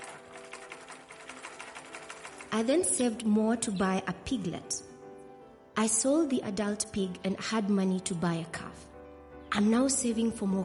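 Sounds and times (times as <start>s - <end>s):
pedal-powered sewing machine running: 0.0s - 3.1s
speech: 2.5s - 4.9s, 5.8s - 8.9s, 9.5s - 10.6s.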